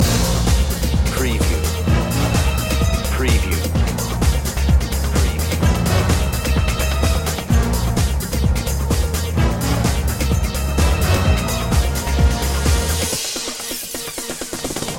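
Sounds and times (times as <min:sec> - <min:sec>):
groove loop: 0:00.0 - 0:14.9.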